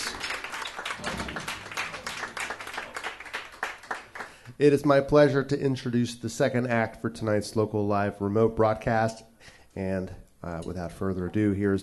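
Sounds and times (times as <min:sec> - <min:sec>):
audience applause at a live music night at the Orbit Room: 0:00.0 - 0:04.4
speech: 0:04.6 - 0:11.8.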